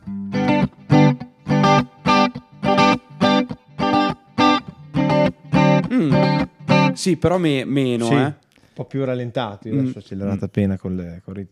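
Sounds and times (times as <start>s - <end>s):
guitar strummed with a pick in a cumbia rhythm: 0.0s - 7.1s
speech: 5.9s - 11.5s.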